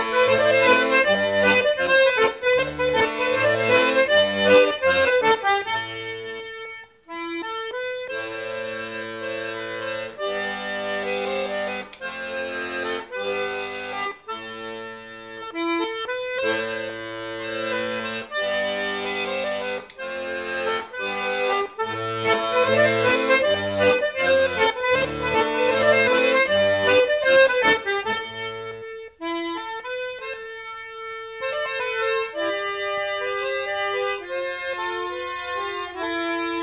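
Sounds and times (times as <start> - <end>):
gavotte dance music for a ball: 0.0 - 36.6.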